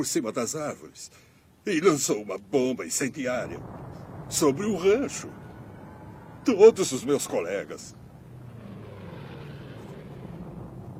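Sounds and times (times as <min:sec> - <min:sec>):
speech: 0:00.0 - 0:05.4, 0:06.4 - 0:08.0
propeller airplane flying overhead: 0:03.3 - 0:10.9.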